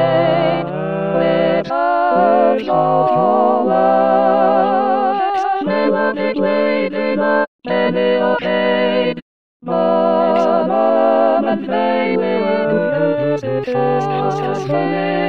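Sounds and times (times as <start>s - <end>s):
all singers singing: 0.0s - 15.2s.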